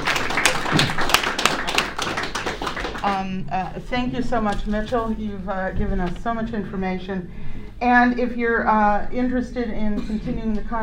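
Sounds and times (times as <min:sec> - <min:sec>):
audience applause: 0:00.0 - 0:03.2
speech: 0:03.0 - 0:10.8.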